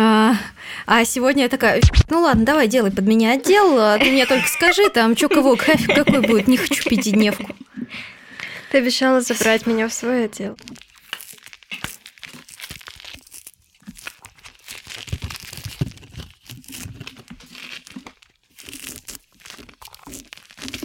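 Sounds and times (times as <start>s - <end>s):
speech: 0.8s - 8.1s, 8.7s - 10.8s
laughter: 4.0s - 7.6s
ASMR-style peeling of tangerines: 10.6s - 20.8s.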